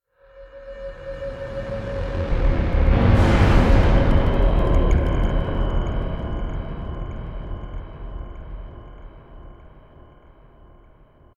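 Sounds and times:
swelling stinger: 0.2 - 11.3.

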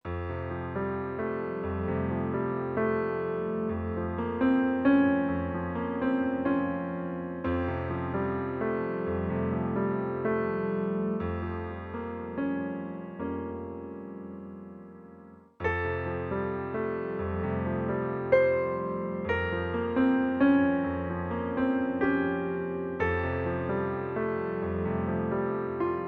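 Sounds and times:
solo piano: 0.0 - 26.0.

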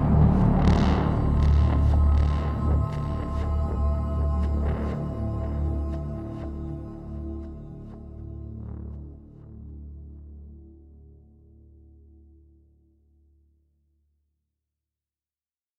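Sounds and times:
percussion: 0.0 - 7.6
synth: 0.0 - 10.9.

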